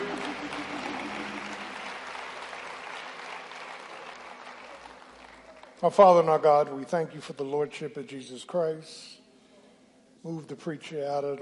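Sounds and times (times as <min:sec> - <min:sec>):
audience clapping: 0:00.0 - 0:05.8
speech: 0:05.8 - 0:09.2, 0:10.2 - 0:11.4.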